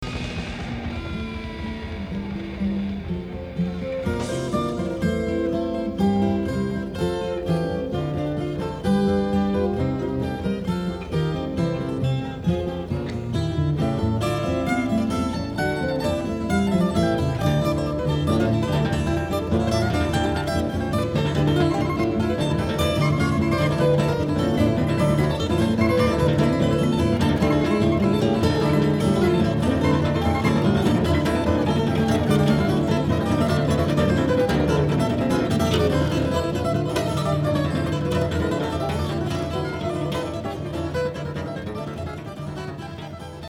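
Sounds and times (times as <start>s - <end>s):
guitar concerto: 0.0s - 43.4s.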